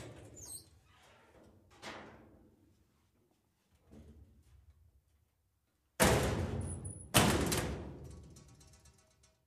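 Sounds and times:
locker door slamming: 6.0 - 8.1.

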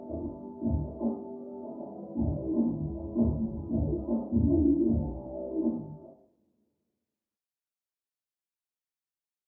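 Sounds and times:
hip hop beat: 0.0 - 6.1.

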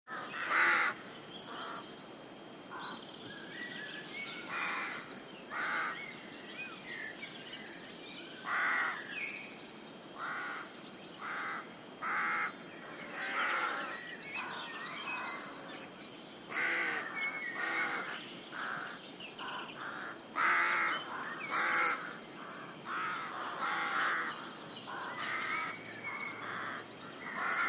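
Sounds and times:
rooks cawing: 0.1 - 1.8, 4.5 - 6.0, 8.5 - 9.0, 10.2 - 13.9, 16.5 - 27.6
background hiss: 0.1 - 27.6.

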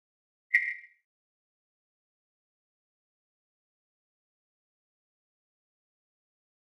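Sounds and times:
electronic flash beep: 0.5 - 1.0.

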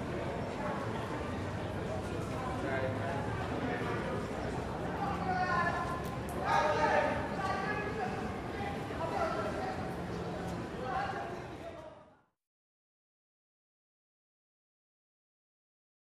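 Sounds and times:
reverberated walla of young women and men on Harlem block: 0.0 - 12.1.

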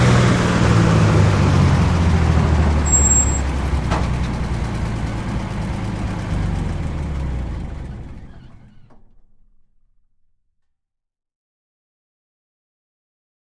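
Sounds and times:
2.5 T truck engine slow idle: 0.2 - 9.4.

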